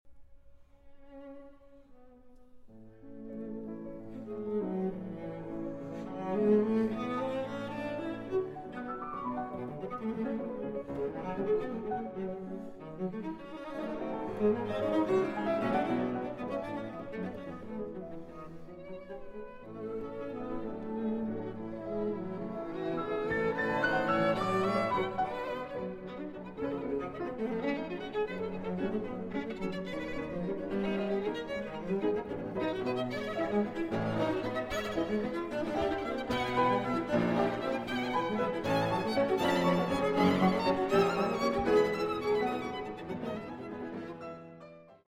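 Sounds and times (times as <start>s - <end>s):
piano trio in A minor: 2.8s - 45.0s.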